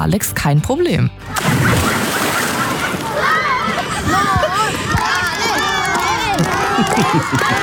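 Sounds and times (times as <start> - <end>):
speech: 0.0 - 2.0, 6.4 - 7.6
splashing water in a swimming pool: 1.3 - 5.8
laughter: 1.3 - 7.6
schoolchildren cheering at the edge of a swimming pool: 1.4 - 7.6.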